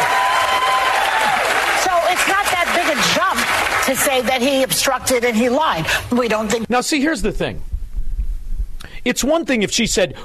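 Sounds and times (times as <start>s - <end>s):
studio audience cheering and whooping: 0.0s - 3.8s
studio audience clapping: 0.0s - 5.2s
speech: 3.9s - 7.7s, 9.0s - 10.2s.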